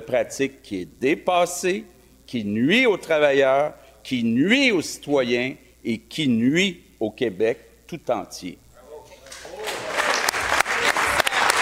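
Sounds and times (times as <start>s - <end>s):
speech: 0.1s - 8.6s
short ovation sound effect of crowd applause played by the host: 9.3s - 11.6s.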